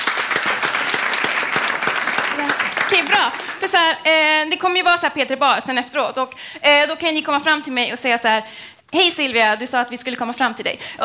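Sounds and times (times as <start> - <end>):
live audience applauding: 0.0 - 3.9
speech: 3.0 - 11.0.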